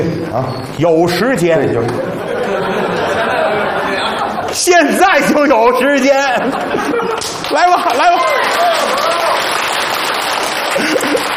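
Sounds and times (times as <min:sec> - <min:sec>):
speech: 0:00.0 - 0:02.7, 0:04.5 - 0:09.6
laughter: 0:01.9 - 0:09.5, 0:10.3 - 0:11.3
audience applause: 0:05.9 - 0:11.3.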